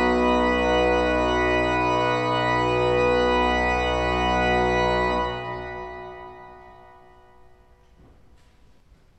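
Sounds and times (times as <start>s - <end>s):
organ: 0.0s - 8.2s.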